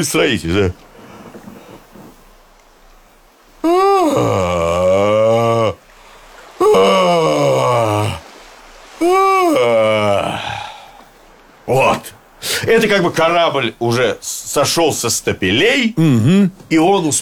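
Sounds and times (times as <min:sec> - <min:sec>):
speech: 0:00.0 - 0:00.9, 0:12.8 - 0:17.1
long exaggerated yawn: 0:03.6 - 0:08.3, 0:09.0 - 0:11.1.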